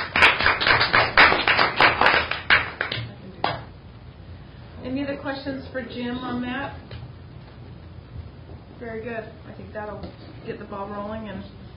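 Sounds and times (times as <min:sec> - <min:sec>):
audience applause: 0:00.0 - 0:03.0
speech: 0:05.2 - 0:06.9, 0:08.8 - 0:11.6.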